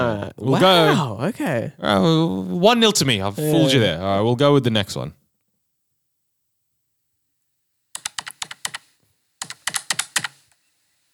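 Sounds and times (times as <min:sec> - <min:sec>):
speech: 0:00.2 - 0:05.2
typing on a PC computer keyboard: 0:08.0 - 0:10.4.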